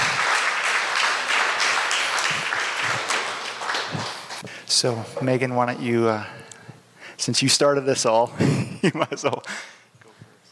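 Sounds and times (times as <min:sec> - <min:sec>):
audience clapping: 0:00.0 - 0:04.5
speech: 0:04.8 - 0:06.4, 0:07.2 - 0:09.7.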